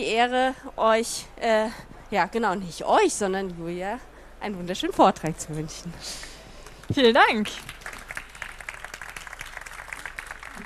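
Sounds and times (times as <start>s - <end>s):
speech: 0.0s - 6.3s, 6.9s - 7.8s
audience applause: 7.6s - 10.6s.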